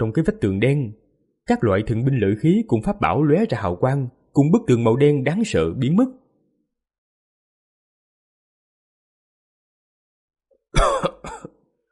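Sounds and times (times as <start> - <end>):
speech: 0.0 - 6.2
person coughing up blood: 10.8 - 11.6.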